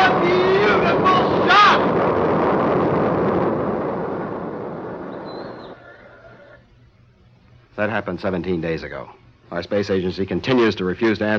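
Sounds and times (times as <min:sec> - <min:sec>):
rocket lifting off at launch with a roaring rumble: 0:00.0 - 0:06.6
speech: 0:07.8 - 0:11.3.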